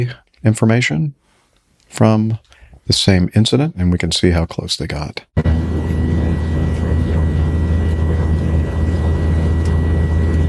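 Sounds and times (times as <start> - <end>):
speech: 0.0 - 1.2, 1.9 - 5.7
aircraft engine droning with tonal whine: 5.4 - 10.4.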